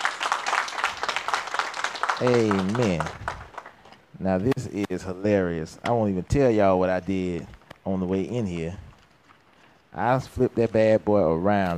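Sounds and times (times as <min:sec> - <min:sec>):
church congregation hand clapping in praise: 0:00.0 - 0:04.1
speech: 0:02.2 - 0:03.4, 0:04.2 - 0:08.8, 0:10.0 - 0:11.7.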